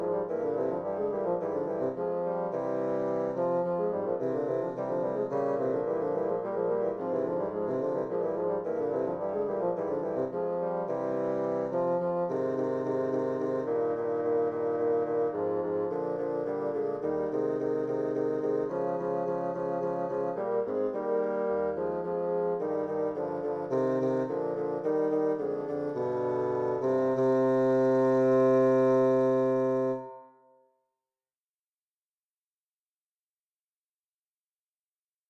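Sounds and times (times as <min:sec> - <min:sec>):
bassoon trio playing a chaconne: 0:00.0 - 0:30.2.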